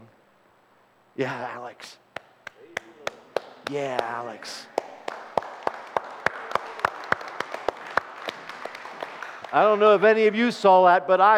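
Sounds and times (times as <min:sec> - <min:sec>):
speech: 0:01.2 - 0:02.0, 0:03.7 - 0:04.7, 0:09.5 - 0:11.3
child clapping hands: 0:02.2 - 0:09.6.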